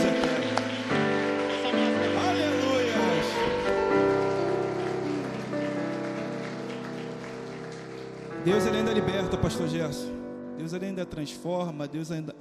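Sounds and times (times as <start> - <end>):
audience applauding: 0.0 - 9.8
sustained keyboard chords: 0.0 - 12.3
speech: 8.4 - 12.3.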